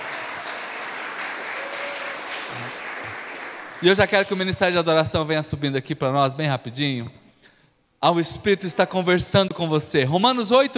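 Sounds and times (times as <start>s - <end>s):
audience applauding: 0.0s - 4.3s
speech: 3.8s - 7.2s, 8.0s - 10.7s.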